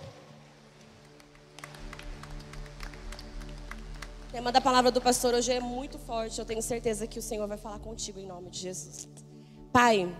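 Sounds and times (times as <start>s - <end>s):
audience applause: 0.0s - 5.1s
steady sustained low musical drone: 0.0s - 10.1s
speech: 4.4s - 9.2s, 9.8s - 10.1s.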